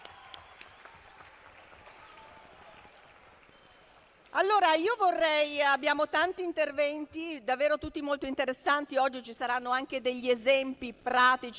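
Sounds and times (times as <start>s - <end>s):
audience applauding: 0.0s - 4.4s
speech: 4.4s - 11.5s.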